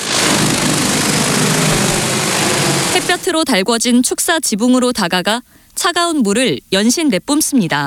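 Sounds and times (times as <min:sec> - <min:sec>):
large drone flying: 0:00.0 - 0:03.3
speech: 0:03.2 - 0:07.8.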